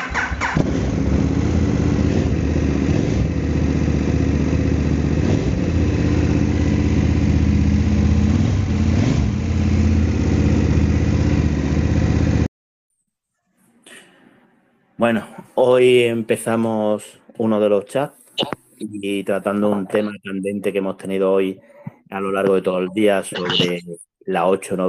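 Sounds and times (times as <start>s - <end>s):
KTM motorcycle engine starting and idling: 0.0s - 12.5s
speech: 15.0s - 24.8s.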